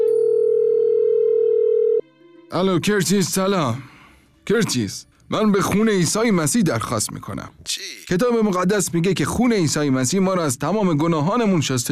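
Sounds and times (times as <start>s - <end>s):
telephone calling tone as a call is placed: 0.0s - 2.0s
speech: 2.5s - 3.9s, 4.5s - 11.8s.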